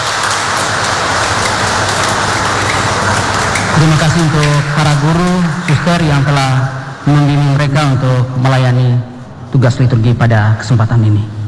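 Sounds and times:
crowd applause: 0:00.0 - 0:07.7
speech: 0:03.8 - 0:11.4.

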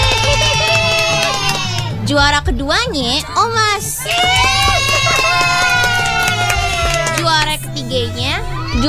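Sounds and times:
children cheering and shouting at a prize announcement: 0:00.0 - 0:08.8
laughter: 0:00.0 - 0:08.8
music: 0:00.0 - 0:08.8
speech: 0:02.1 - 0:04.4, 0:07.9 - 0:08.8.

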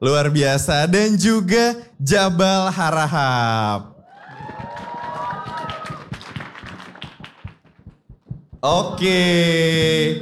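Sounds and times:
speech: 0:00.0 - 0:03.9, 0:08.6 - 0:10.2
audience cheers and whoops: 0:04.0 - 0:06.3
audience applause: 0:04.1 - 0:07.8.

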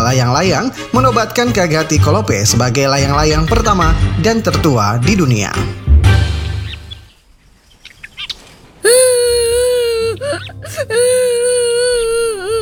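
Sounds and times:
speech: 0:00.0 - 0:05.9, 0:10.6 - 0:11.4
child crying after being bullied: 0:08.8 - 0:12.5.

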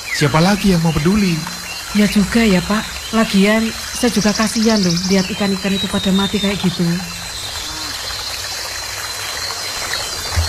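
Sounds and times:
river water flowing: 0:00.0 - 0:10.4
speech: 0:00.2 - 0:07.2.

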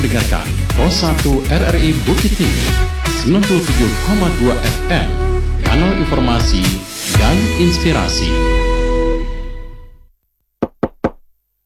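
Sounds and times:
speech: 0:00.1 - 0:08.6
knocking on a door: 0:10.6 - 0:11.2.

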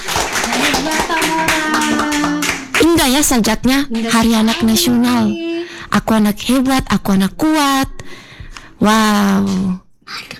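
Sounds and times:
audience applauding at a children's day event: 0:00.0 - 0:02.9
speech: 0:03.1 - 0:05.4, 0:06.0 - 0:08.2, 0:08.8 - 0:10.3.

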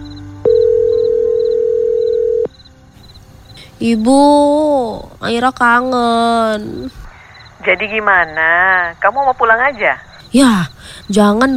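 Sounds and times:
faint regular chirping: 0:00.0 - 0:03.8, 0:06.8 - 0:11.5
telephone ringing tone while calling: 0:00.4 - 0:02.5
speech: 0:03.8 - 0:07.0, 0:07.6 - 0:11.5.

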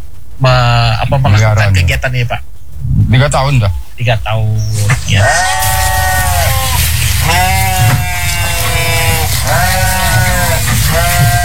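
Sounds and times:
speech: 0:00.4 - 0:02.5, 0:03.1 - 0:05.8
goats bleating: 0:04.7 - 0:11.4.

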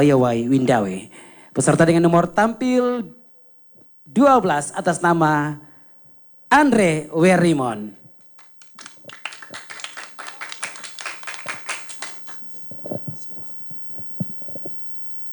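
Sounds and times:
speech: 0:00.0 - 0:03.2, 0:04.1 - 0:05.7, 0:06.5 - 0:08.0
audience applause: 0:08.4 - 0:12.7.

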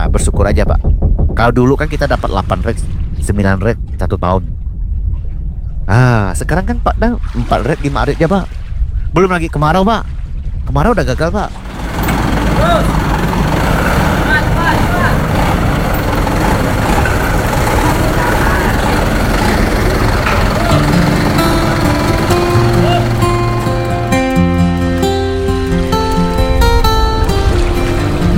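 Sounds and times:
boat engine rumbling at a river dock: 0:00.0 - 0:28.3
speech: 0:00.2 - 0:04.6, 0:05.9 - 0:11.6
indistinct voices: 0:11.5 - 0:24.3.

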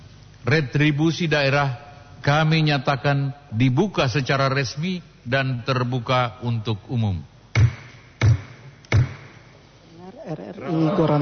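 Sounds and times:
speech: 0:00.4 - 0:07.3, 0:10.3 - 0:11.1
wooden gavel knocks signalling meeting opening: 0:07.6 - 0:09.4.

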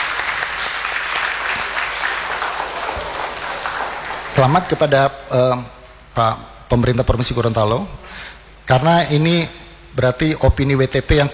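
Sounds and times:
applause: 0:00.0 - 0:05.1
speech: 0:04.4 - 0:11.3.

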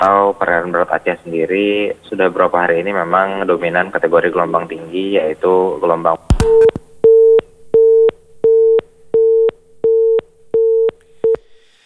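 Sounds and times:
speech: 0:00.0 - 0:06.4
telephone busy tone after a call with a weather forecaster drops: 0:06.3 - 0:11.6.

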